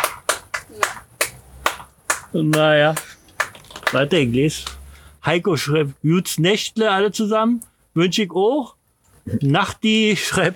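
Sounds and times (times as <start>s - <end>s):
sharp hand claps: 0.0s - 4.8s
speech: 2.3s - 3.1s, 3.9s - 10.5s.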